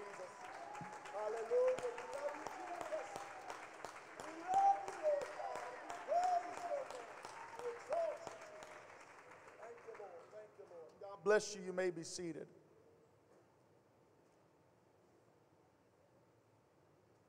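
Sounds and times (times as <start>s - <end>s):
church congregation clapping a hand clap of praise at a service: 0.0s - 12.3s
speech: 1.3s - 2.0s, 11.3s - 12.6s.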